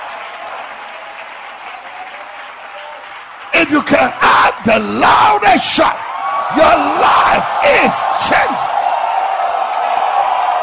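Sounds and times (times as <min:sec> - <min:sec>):
audience clapping: 0:00.0 - 0:10.6
speech: 0:03.6 - 0:08.7.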